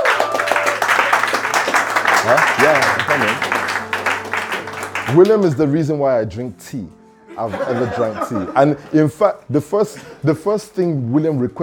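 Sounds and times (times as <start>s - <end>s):
laughter: 0.0s - 5.4s, 7.3s - 9.1s
people clapping: 0.0s - 5.6s
speech: 2.3s - 3.6s, 5.1s - 11.6s.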